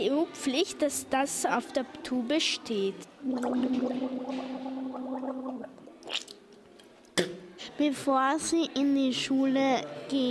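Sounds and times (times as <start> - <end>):
speech: 0.0 - 4.8, 6.1 - 6.4, 7.2 - 10.2
low-pitched watery gargle while brushing teeth: 3.2 - 6.4
short wet spitting bursts: 3.2 - 6.4.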